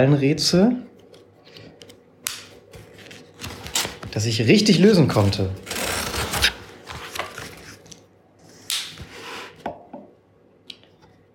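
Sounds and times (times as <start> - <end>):
speech: 0.0 - 0.9, 4.2 - 5.6
scissors cutting open a page of an escape room puzzle book: 5.6 - 7.8.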